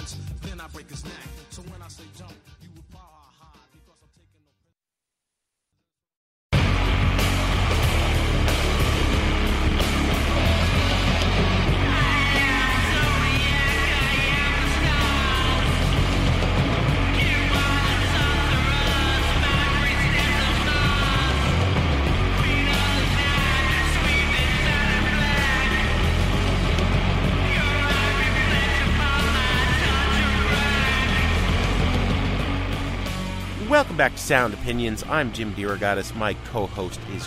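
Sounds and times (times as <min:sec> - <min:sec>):
speech: 0:00.6 - 0:02.6, 0:34.0 - 0:37.2
doom metal song with distorted guitar and bass: 0:06.6 - 0:37.2.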